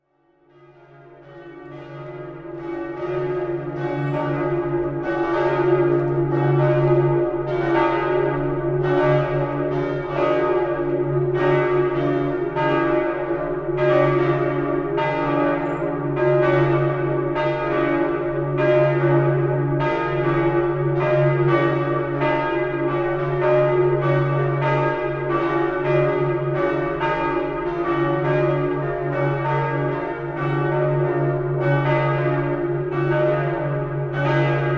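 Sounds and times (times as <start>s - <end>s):
bells of Cathédrale Saint-Étienne in Limoges France: 0.0s - 34.7s.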